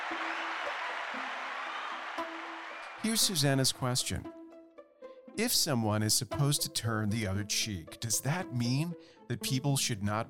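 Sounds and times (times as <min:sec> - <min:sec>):
crowd clapping: 0:00.0 - 0:03.8
speech: 0:03.0 - 0:04.4, 0:05.4 - 0:10.2.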